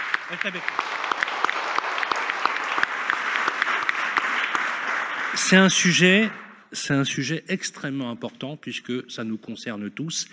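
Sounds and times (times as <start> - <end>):
applause: 0.0 - 6.4
speech: 0.3 - 1.0, 5.4 - 10.3.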